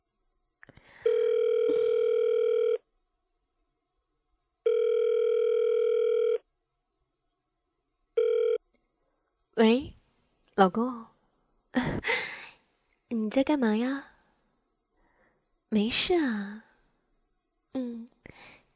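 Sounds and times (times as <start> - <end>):
telephone ringback tone while a call connects: 1.0 - 2.8, 4.7 - 6.4, 8.2 - 8.6
speech: 9.6 - 9.9, 10.6 - 11.1, 13.3 - 14.1, 15.7 - 16.6, 17.8 - 18.2.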